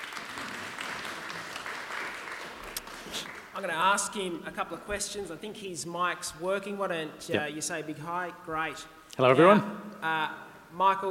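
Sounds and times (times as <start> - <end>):
audience applause: 0.0 - 3.6
speech: 3.1 - 11.0.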